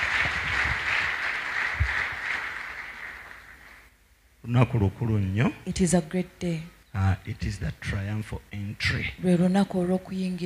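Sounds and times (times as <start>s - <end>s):
audience clapping: 0.0s - 3.9s
speech: 4.5s - 10.4s.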